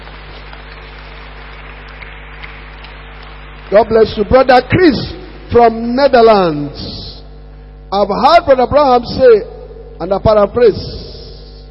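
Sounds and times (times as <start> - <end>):
audience clapping: 0.0 - 4.3
speech: 3.7 - 6.9, 7.9 - 11.0.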